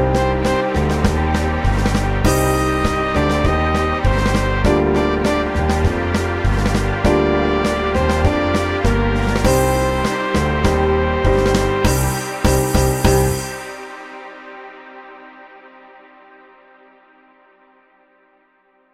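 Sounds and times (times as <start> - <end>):
tango music in B flat: 0.0 - 13.9.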